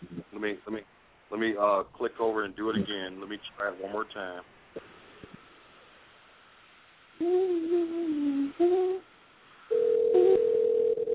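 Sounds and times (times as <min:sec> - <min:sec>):
speech: 0:00.4 - 0:04.9, 0:07.2 - 0:09.1
telephone ringback tone on a call: 0:09.7 - 0:11.1.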